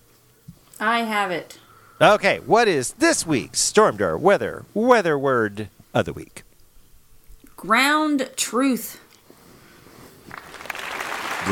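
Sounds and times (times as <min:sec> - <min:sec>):
speech: 0:00.8 - 0:06.4, 0:07.6 - 0:09.0
applause sound effect: 0:10.3 - 0:11.5.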